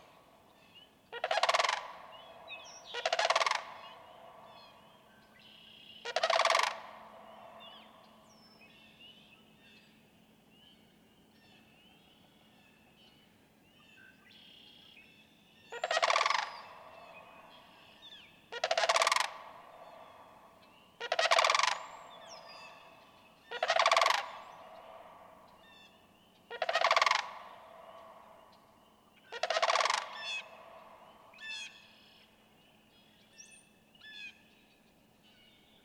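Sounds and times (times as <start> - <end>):
Sandhill crane rattling calls: 1.2 - 2.0, 2.8 - 4.0, 6.0 - 7.3, 15.8 - 17.1, 18.5 - 20.1, 21.0 - 25.4, 26.5 - 28.1, 29.3 - 31.8.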